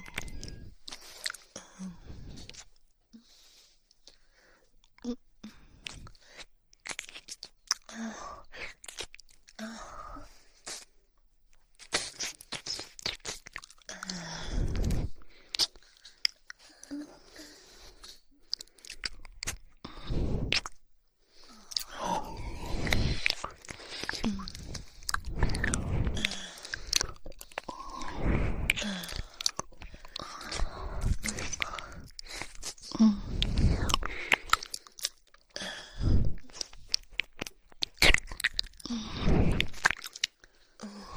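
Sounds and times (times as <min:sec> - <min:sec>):
woman licking ears with lots of saliva: 0:11.8 - 0:20.8, 0:21.5 - 0:40.5.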